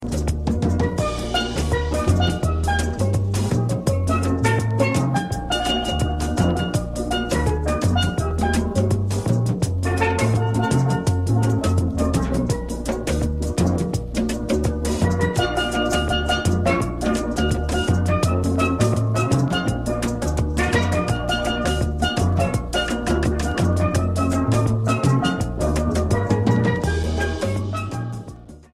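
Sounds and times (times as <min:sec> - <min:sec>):
steel drums: 0:00.0 - 0:28.7.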